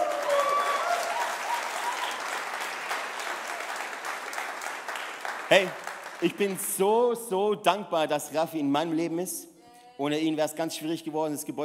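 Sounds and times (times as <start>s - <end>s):
audience applause: 0.0s - 6.8s
speech: 5.5s - 11.6s.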